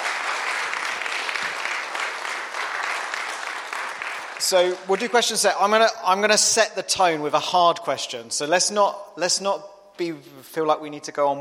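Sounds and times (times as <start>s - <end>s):
crowd applause: 0.0s - 5.4s
speech: 4.4s - 11.3s.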